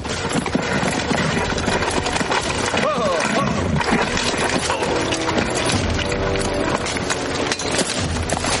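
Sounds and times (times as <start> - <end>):
dense film music: 0.0 - 8.5
horse hooves clip-clopping on a stony path: 0.0 - 8.5
voices: 2.4 - 7.2.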